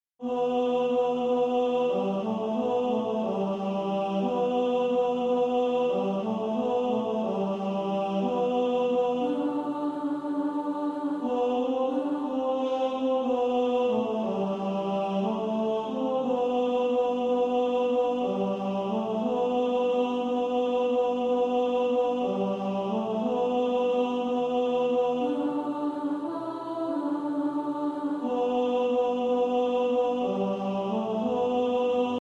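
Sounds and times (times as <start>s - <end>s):
tenor singing: 0.2s - 32.2s.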